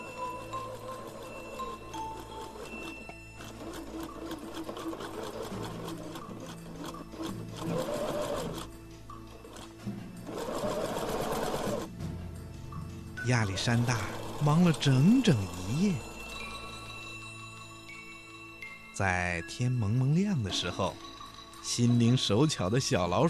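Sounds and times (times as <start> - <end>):
sewing machine running: 0.0 - 8.7, 9.3 - 11.9, 13.4 - 17.0
speech: 13.3 - 16.1, 19.0 - 21.1, 21.7 - 23.2.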